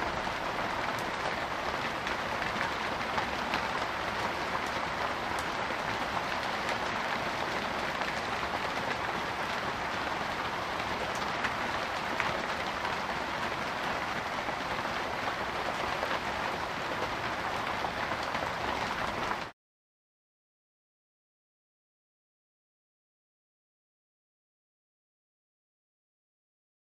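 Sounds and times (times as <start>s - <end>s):
medium hard rain heard from inside: 0.0s - 19.5s.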